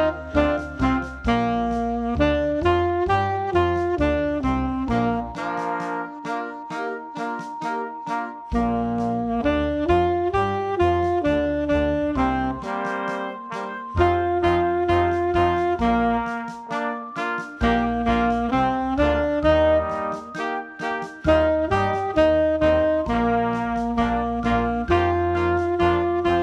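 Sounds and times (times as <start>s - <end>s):
loud rock tenor saxophone: 0.0s - 26.4s.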